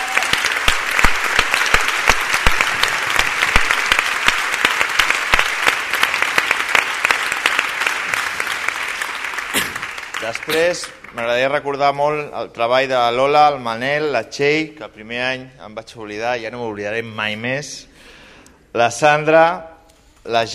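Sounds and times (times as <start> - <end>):
audience applause: 0.0 - 11.4
speech: 10.3 - 18.1, 18.8 - 20.5.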